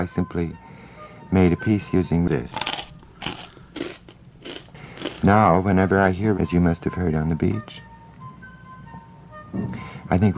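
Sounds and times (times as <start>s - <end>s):
speech: 0.0s - 0.6s, 1.3s - 2.7s, 5.2s - 7.9s, 9.5s - 10.3s
crunchy chewing: 2.4s - 5.6s
wet mouth noises: 2.5s - 5.5s.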